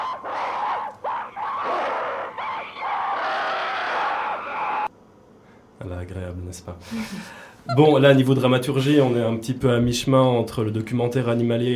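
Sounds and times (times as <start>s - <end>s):
monkey calls and screeches: 0.0s - 4.1s
laughter: 0.0s - 4.9s
speech: 6.1s - 11.7s.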